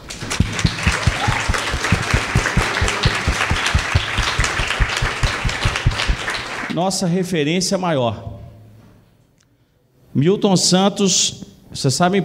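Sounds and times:
audience applause: 0.0s - 6.7s
speech: 6.8s - 8.4s, 10.2s - 12.2s.

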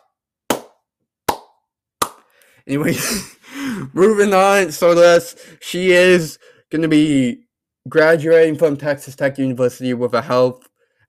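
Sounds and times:
loud sharp hand claps: 0.0s - 2.3s
speech: 2.6s - 10.7s.

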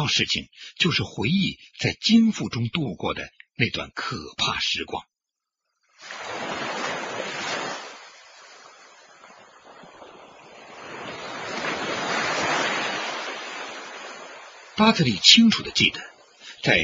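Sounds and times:
speech: 0.0s - 5.1s, 14.8s - 16.8s
rough sea waves roaring: 6.0s - 16.8s.

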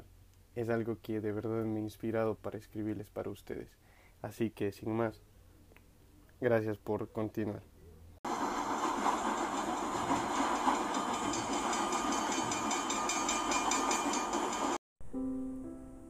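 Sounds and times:
speech: 0.6s - 5.3s, 6.4s - 7.7s
train at a railway station rumbling: 8.3s - 14.8s.

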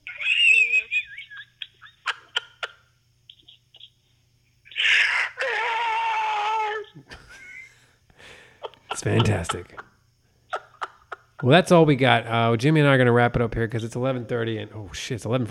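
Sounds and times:
laughter: 0.0s - 3.9s, 4.7s - 7.8s, 8.4s - 9.9s, 10.5s - 12.0s
voice imitating a Star Destroyer scream: 4.7s - 6.9s
speech: 9.0s - 9.8s, 11.4s - 15.4s.

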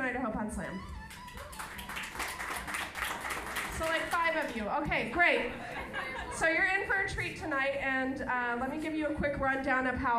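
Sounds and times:
speech: 0.1s - 1.0s, 3.8s - 10.1s
scattered applause from a small audience: 1.0s - 4.6s
laughter: 5.2s - 6.8s.

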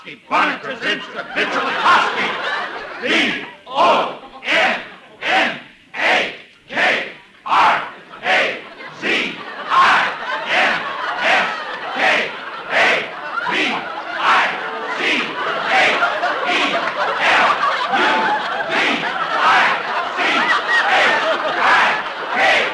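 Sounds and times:
speech: 0.0s - 4.2s
laughter: 0.0s - 5.5s, 7.5s - 22.7s
football crowd chanting and cheering, radio sound effect: 0.0s - 22.7s.

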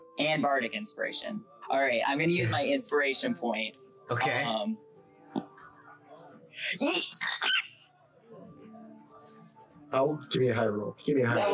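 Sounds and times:
speech: 0.2s - 4.8s, 6.6s - 7.3s, 9.9s - 11.5s
sneeze: 6.7s - 7.8s.

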